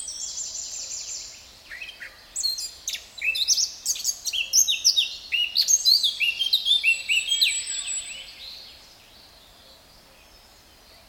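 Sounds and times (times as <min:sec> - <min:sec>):
Sylvia atricapilla Eurasian blackcap singing: 0:01.7 - 0:08.4.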